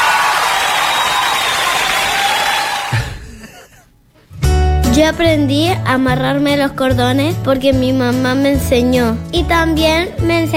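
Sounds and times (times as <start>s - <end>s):
audience applause: 0.0s - 3.2s
crowd noise: 0.0s - 3.4s
speech: 5.0s - 10.5s.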